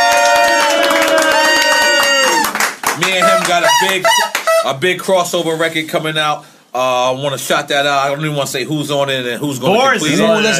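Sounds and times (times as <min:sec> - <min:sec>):
crowd applauding and cheering loudly: 0:00.0 - 0:04.6
speech: 0:03.5 - 0:10.5.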